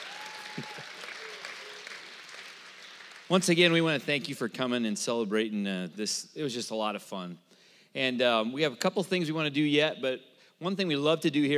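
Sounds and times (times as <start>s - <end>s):
crowd clapping: 0.0s - 3.9s
speech: 0.6s - 1.0s, 3.3s - 11.5s.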